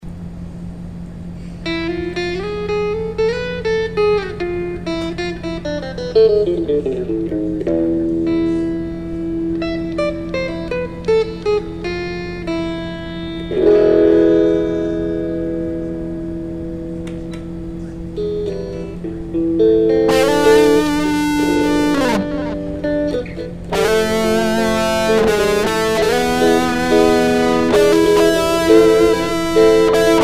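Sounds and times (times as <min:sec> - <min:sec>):
metal flamenco music: 0:02.1 - 0:30.2.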